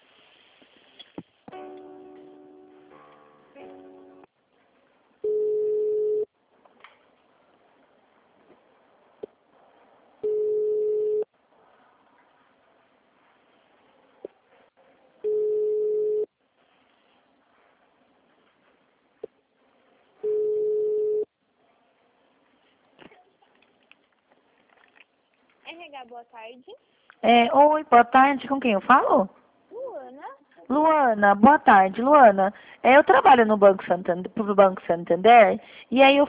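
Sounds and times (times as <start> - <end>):
faint noise: 0.0 - 36.2
ringback tone of an outgoing telephone call: 5.2 - 6.3, 10.2 - 11.3, 15.3 - 16.3, 20.2 - 21.3
speech: 25.7 - 29.4, 30.8 - 36.2.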